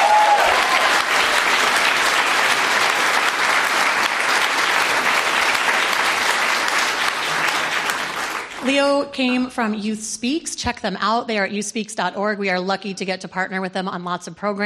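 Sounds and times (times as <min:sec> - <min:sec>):
audience applause: 0:00.0 - 0:08.8
speech: 0:08.8 - 0:14.6.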